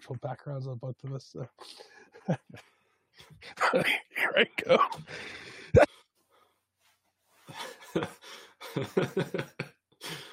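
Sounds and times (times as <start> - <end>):
speech: 0.1 - 5.9, 7.9 - 9.7
person laughing: 3.4 - 5.1, 7.5 - 9.8
person coughing: 3.6 - 5.1, 5.8 - 6.0.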